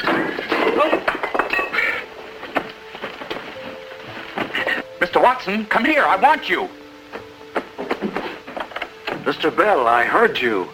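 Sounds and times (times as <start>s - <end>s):
equipment clattering as it is knocked over: 0.0s - 4.8s, 7.5s - 9.3s
speech: 5.2s - 6.8s, 9.3s - 10.7s.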